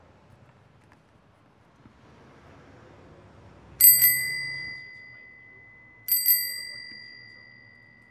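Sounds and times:
bicycle bell: 0:03.8 - 0:08.0.

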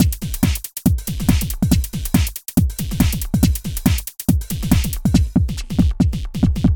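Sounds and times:
electro swing music at 140 bpm: 0:00.0 - 0:06.7.

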